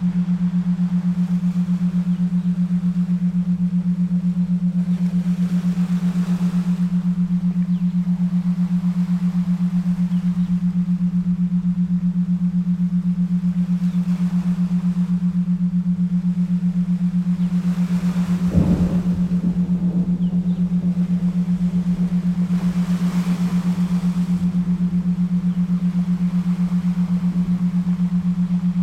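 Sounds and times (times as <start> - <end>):
7.83 Hz Schumann resonance isochronic tones: 0.0 - 28.8
relaxing ocean sounds: 0.0 - 28.8.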